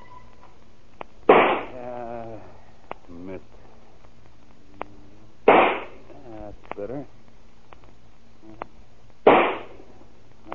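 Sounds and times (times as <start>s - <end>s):
rifle shot in a yard: 1.3s - 1.8s, 5.5s - 6.0s, 9.2s - 9.8s.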